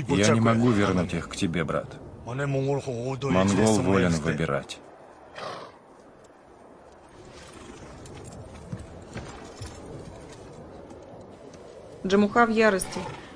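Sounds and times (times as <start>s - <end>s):
speech: 0.0s - 5.5s, 12.0s - 13.2s
horse trotting away: 5.0s - 12.3s
horse whinny: 5.4s - 5.8s.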